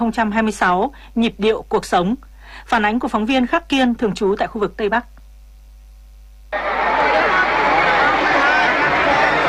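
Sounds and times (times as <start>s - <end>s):
speech: 0.0s - 5.1s
tens of thousands of spectators cheering at outdoor concert: 6.5s - 9.4s.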